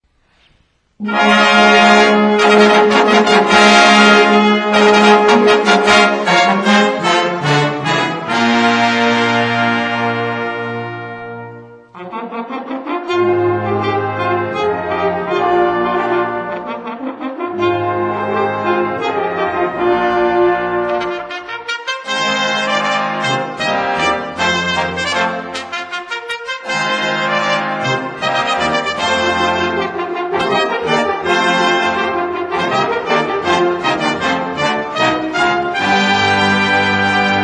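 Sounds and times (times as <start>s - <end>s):
fanfare: 1.0s - 37.4s.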